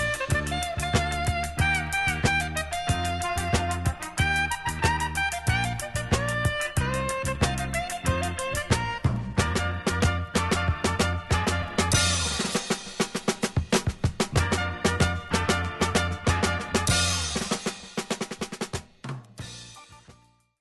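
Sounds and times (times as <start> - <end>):
big drum playing samba: 0.0 - 19.8.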